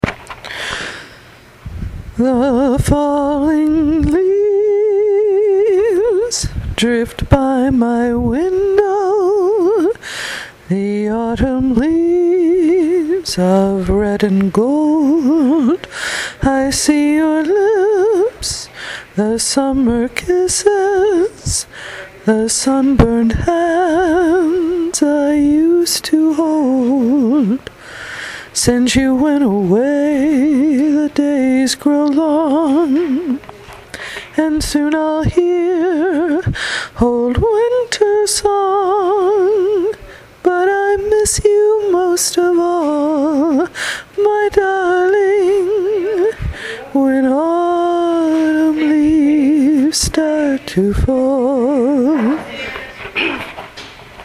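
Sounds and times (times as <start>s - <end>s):
vocals: 0.0s - 54.2s.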